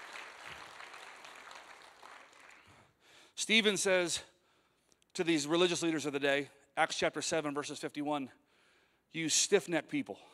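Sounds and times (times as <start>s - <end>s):
applause: 0.0s - 3.0s
speech: 3.4s - 4.3s, 5.2s - 8.4s, 9.1s - 10.3s.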